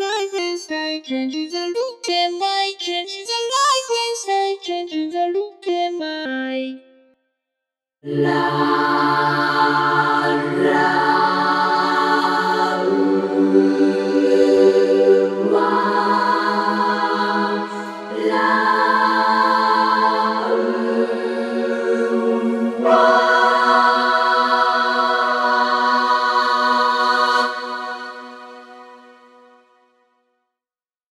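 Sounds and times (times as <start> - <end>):
synthesizer vocoder vocal: 0.0 - 7.0, 8.0 - 29.1.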